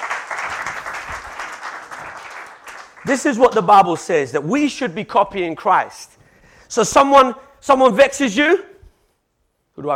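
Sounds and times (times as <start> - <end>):
audience applause: 0.0 - 3.3
speech: 3.0 - 8.7, 9.8 - 9.9.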